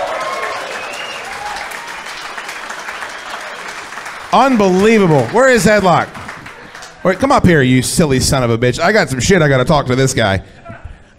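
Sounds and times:
audience applause: 0.0s - 7.5s
speech: 4.3s - 6.2s, 7.0s - 11.1s.

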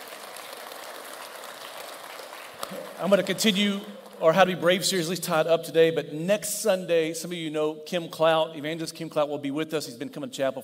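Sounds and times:
audience applause: 0.0s - 4.4s
speech: 2.7s - 10.6s.

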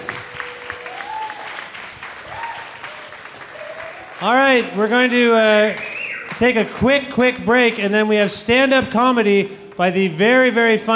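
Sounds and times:
audience clapping: 0.0s - 8.2s
speech: 4.2s - 10.9s
faint whistle: 5.7s - 6.3s.

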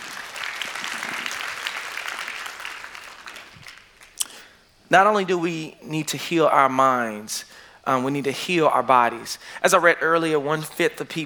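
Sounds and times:
audience applause: 0.0s - 4.2s
speech: 4.9s - 11.2s.

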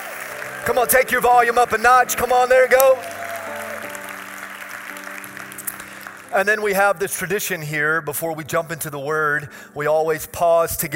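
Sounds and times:
audience applause during a church gathering in Germantown: 0.0s - 6.7s
sustained instrumental tones: 0.3s - 7.2s
speech: 0.7s - 3.1s, 6.3s - 10.9s.

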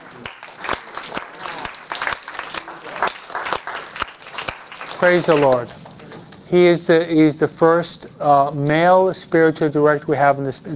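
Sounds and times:
audience applause: 0.0s - 6.0s
speech: 5.0s - 5.8s, 6.5s - 10.7s.

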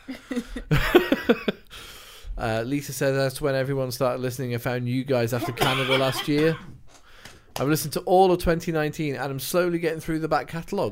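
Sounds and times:
laughter: 0.0s - 1.6s, 5.4s - 6.7s
speech: 2.4s - 6.7s, 7.6s - 10.9s
person having a coughing fit: 5.4s - 6.7s.

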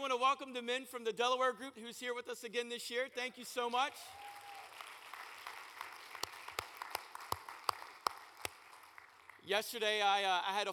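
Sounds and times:
speech: 0.1s - 4.4s, 9.5s - 10.7s
church congregation giving a hand clap of praise: 4.0s - 9.6s.

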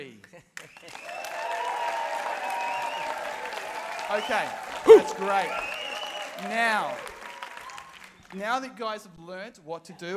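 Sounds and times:
audience applause: 0.8s - 8.4s
crowd cheering: 0.9s - 8.2s
speech: 4.1s - 5.8s, 6.4s - 7.1s, 8.3s - 10.1s.

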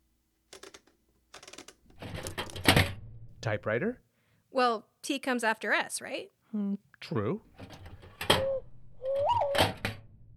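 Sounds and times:
speech: 3.4s - 7.7s
quail call: 8.4s - 9.7s.

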